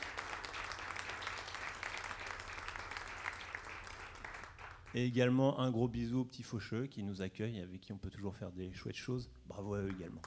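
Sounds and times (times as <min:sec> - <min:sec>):
audience applause: 0:00.0 - 0:04.9
speech: 0:04.9 - 0:10.2.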